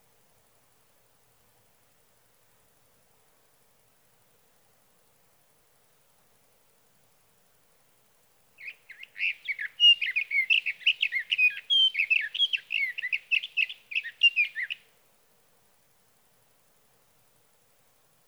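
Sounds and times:
Sage thrasher singing through the night: 0:08.6 - 0:14.8.

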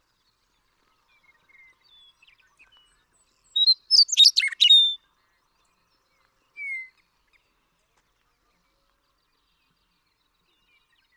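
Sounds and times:
Western meadowlark singing: 0:03.5 - 0:05.0.

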